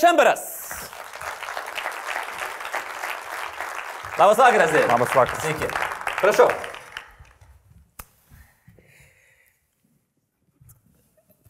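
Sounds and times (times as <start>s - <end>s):
speech: 0.0s - 0.6s, 4.2s - 6.7s
audience applauding to welcome a guest: 0.7s - 7.5s.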